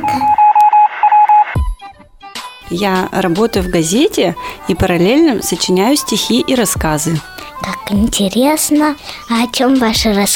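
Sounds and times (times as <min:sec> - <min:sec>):
radio-room high-pitched tone pulsing in beeps: 0:00.0 - 0:01.5
speech: 0:02.7 - 0:10.3.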